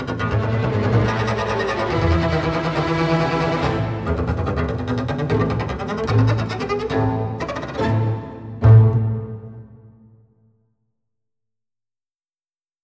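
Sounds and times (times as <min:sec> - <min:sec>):
orchestral bass: 0:00.0 - 0:09.9.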